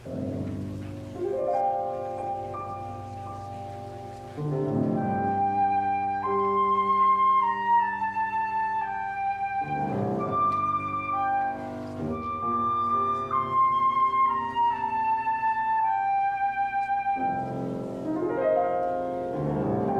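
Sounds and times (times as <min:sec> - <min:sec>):
chamber music: 0:00.0 - 0:19.9.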